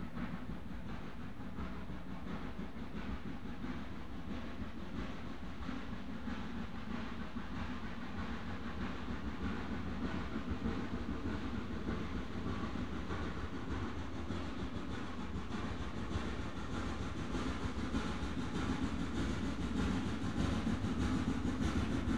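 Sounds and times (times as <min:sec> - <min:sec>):
train climbing a steep gradient: 0:00.0 - 0:22.1.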